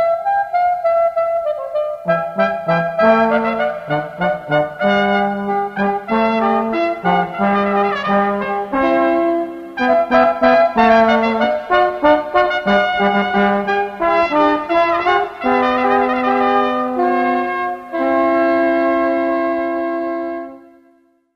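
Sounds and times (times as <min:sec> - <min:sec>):
brass ensemble playing baroque music: 0:00.7 - 0:20.8.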